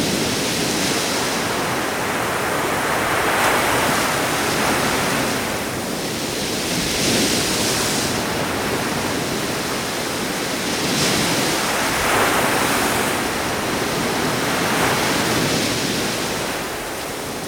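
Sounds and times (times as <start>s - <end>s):
ocean waves: 0.0s - 17.4s.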